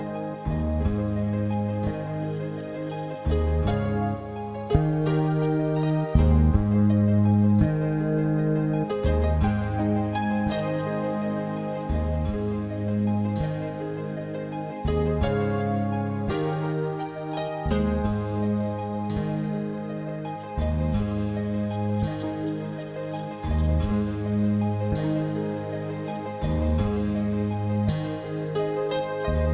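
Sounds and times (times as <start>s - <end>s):
spring rain: 0.0s - 29.5s.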